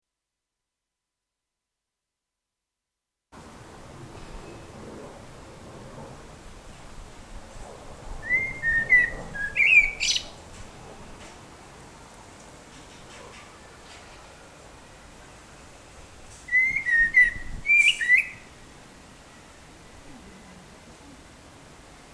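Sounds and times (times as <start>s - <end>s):
blackbird singing: 8.2s - 10.4s, 16.5s - 18.5s.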